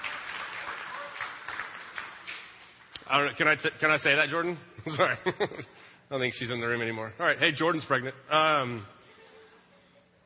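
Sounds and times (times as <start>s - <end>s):
audience applause: 0.0s - 3.1s
speech: 3.1s - 9.0s.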